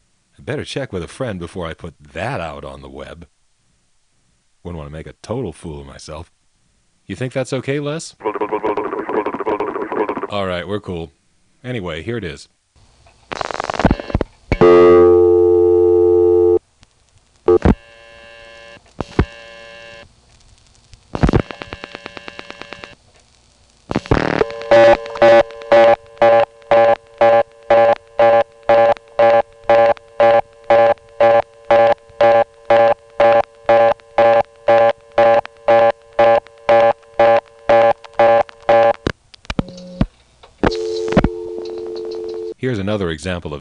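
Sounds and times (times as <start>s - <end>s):
speech: 0.4s - 3.4s, 4.6s - 6.4s, 7.1s - 8.9s, 10.3s - 12.6s, 43.2s - 43.6s
telephone line tones and clicks while dialing into a callback circuit: 13.6s - 16.6s, 17.5s - 20.0s, 21.2s - 23.0s, 23.9s - 42.6s
evenly spaced buzzy telephone beeps: 24.0s - 39.0s.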